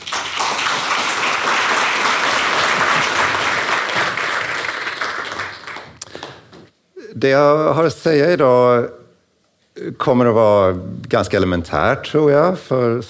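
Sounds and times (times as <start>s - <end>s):
warm audience applause: 0.0s - 6.4s
speech: 7.2s - 9.0s, 9.8s - 13.0s.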